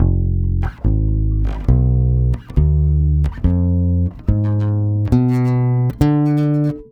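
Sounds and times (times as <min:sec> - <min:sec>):
bossa nova bass in F diminished: 0:00.0 - 0:06.9.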